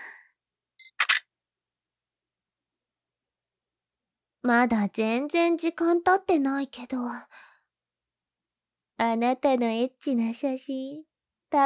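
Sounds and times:
camera electronic beep: 0.8 - 1.3
speech: 4.4 - 7.5, 9.0 - 11.6.

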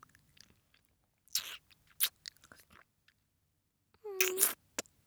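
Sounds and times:
ASMR kissing sounds: 4.2 - 4.6.

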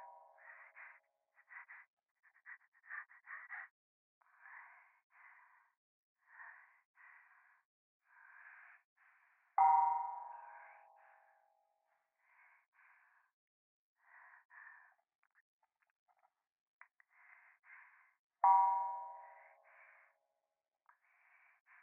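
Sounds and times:
breathing on the left ear at a temple: 0.4 - 11.3, 12.2 - 13.3, 14.0 - 15.1, 17.0 - 18.2, 18.8 - 20.2, 20.9 - 21.8.

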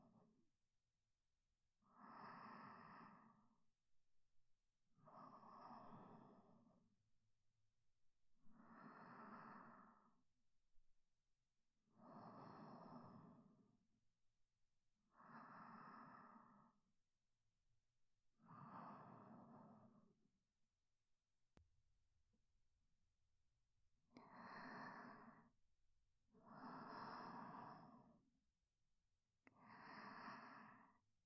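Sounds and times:
sleep breathing: 1.9 - 3.5, 5.1 - 6.7, 8.5 - 10.2, 12.0 - 13.7, 15.1 - 16.8, 18.4 - 20.1, 24.2 - 25.5, 26.5 - 28.2, 29.5 - 31.0.

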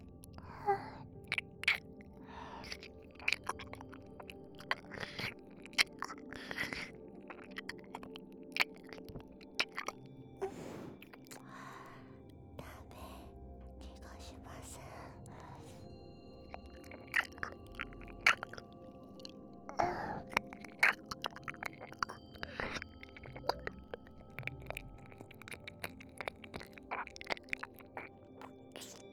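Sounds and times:
ear licking sounds: 1.2 - 11.5, 16.4 - 29.1.

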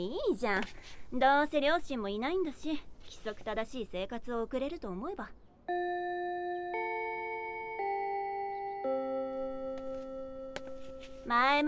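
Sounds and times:
speech: 0.0 - 6.7, 11.0 - 11.6
school bell chime ringing: 5.7 - 11.2.

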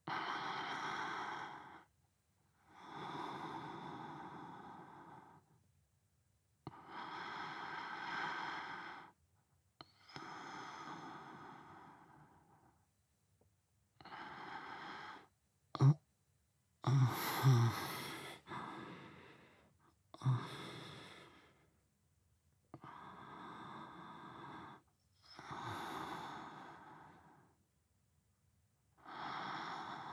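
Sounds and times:
person breathing in sleep: 0.0 - 1.9, 2.7 - 5.5, 6.7 - 9.2, 9.9 - 12.8, 14.0 - 16.0, 16.8 - 21.7, 22.8 - 27.6, 29.0 - 30.1.

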